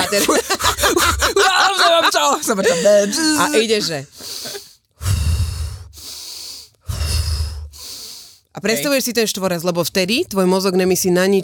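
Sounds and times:
laughter: 0.0 - 4.6
speech: 0.1 - 5.2, 8.6 - 11.4
breathing exercise inhale and exhale: 4.1 - 8.5.

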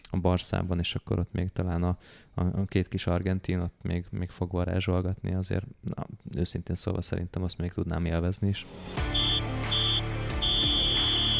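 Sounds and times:
speech: 0.1 - 9.6
triple referee whistle blast: 9.0 - 11.3.

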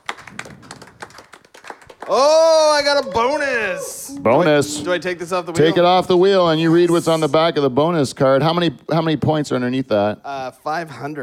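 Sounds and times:
a few people clapping hands: 0.0 - 3.5
speech: 2.1 - 11.2.

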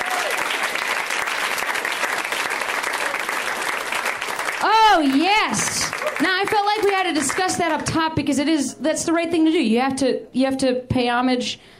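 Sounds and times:
crowd, audience applause: 0.0 - 7.8
speech: 5.0 - 11.7.

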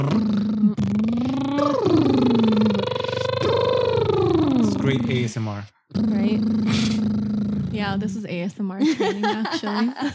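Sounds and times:
voice imitating an engine starting: 0.2 - 7.1
speech: 8.0 - 10.1
laughter: 8.8 - 10.1.

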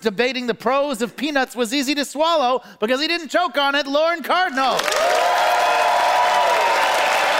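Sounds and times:
speech: 0.0 - 5.3
studio audience applauding: 4.8 - 7.3
faint cheering: 4.9 - 7.3.

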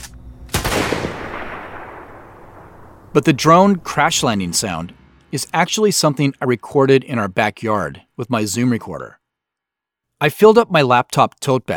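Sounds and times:
rifle gunfire sound effect: 0.0 - 4.0
speech: 3.1 - 9.2, 10.2 - 11.7.

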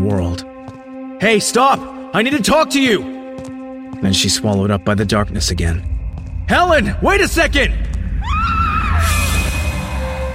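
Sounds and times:
speech: 0.1 - 0.5, 1.2 - 7.9
heavy low rumble: 4.9 - 10.3
woman screaming in audio drama: 8.2 - 9.4.

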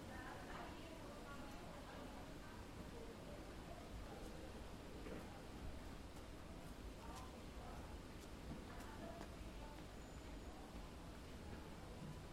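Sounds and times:
flower sellers greeting customers and chatting: 0.0 - 5.8, 6.5 - 12.2
people walking through the market: 6.0 - 10.0.

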